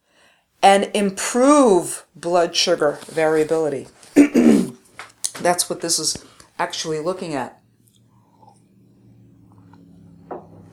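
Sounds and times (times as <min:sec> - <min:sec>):
speech: 0:00.6 - 0:04.0, 0:05.4 - 0:07.6
sip of water: 0:07.8 - 0:08.8.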